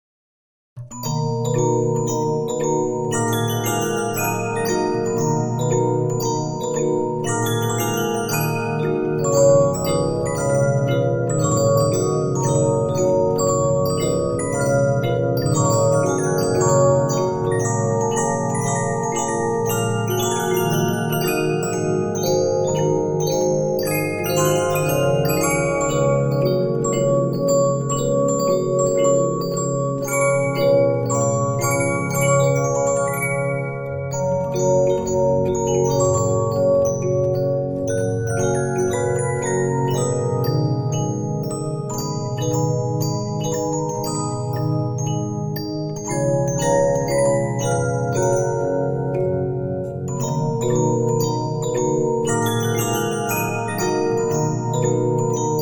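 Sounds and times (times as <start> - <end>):
Regina 15-inch disc music box: 0.8 - 55.6.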